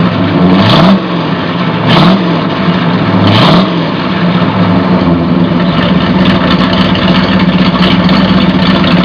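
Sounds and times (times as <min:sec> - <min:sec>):
Ford car engine revving: 0:00.0 - 0:09.0.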